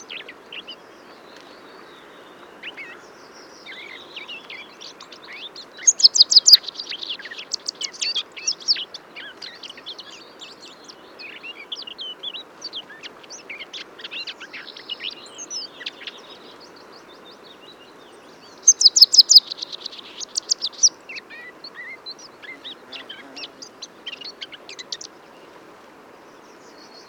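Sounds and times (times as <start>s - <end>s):
hiss: 0.0s - 27.0s
Eurasian blackcap singing: 3.7s - 10.2s, 18.6s - 25.1s.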